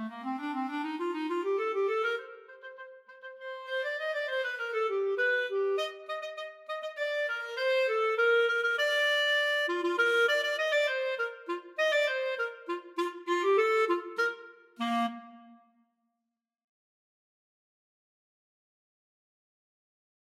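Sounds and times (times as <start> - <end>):
clarinet duet: 0.0 - 15.7.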